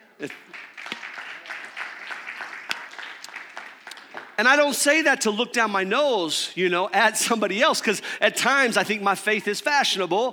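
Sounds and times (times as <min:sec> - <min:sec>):
speech: 0:00.2 - 0:00.7, 0:04.4 - 0:10.3
audience applauding: 0:00.2 - 0:04.8.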